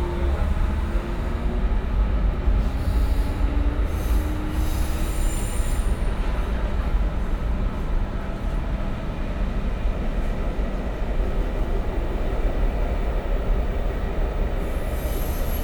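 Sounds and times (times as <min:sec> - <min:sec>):
S-Bahn commuter train in Berlin: 0:00.0 - 0:15.6.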